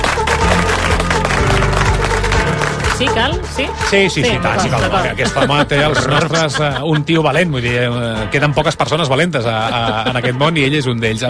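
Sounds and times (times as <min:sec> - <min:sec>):
audience applause: 0:00.0 - 0:07.0
low musical backing: 0:00.0 - 0:11.2
speech: 0:03.0 - 0:11.2
laughter: 0:04.2 - 0:07.8, 0:09.2 - 0:10.9.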